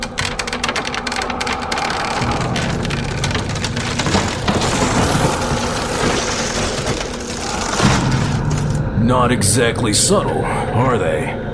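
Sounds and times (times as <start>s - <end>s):
door being smashed open: 0.0s - 8.9s
speech: 9.1s - 11.4s.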